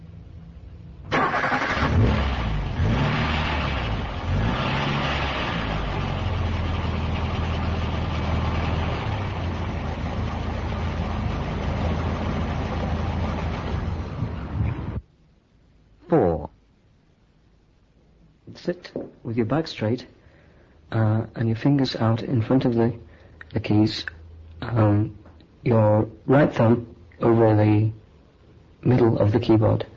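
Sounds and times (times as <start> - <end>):
car engine starting then idling: 0.0 - 15.0
speech: 18.6 - 20.2, 20.9 - 28.0, 28.8 - 29.9.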